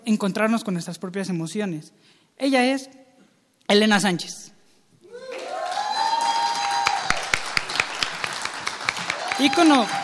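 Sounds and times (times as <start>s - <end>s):
speech: 0.1s - 3.0s, 3.7s - 4.6s, 9.4s - 10.0s
crowd cheering: 5.0s - 10.0s
audience applause: 5.1s - 10.0s.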